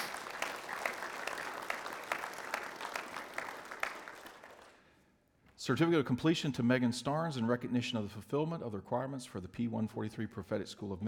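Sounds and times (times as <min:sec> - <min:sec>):
audience applause: 0:00.0 - 0:04.8
speech: 0:05.6 - 0:11.0.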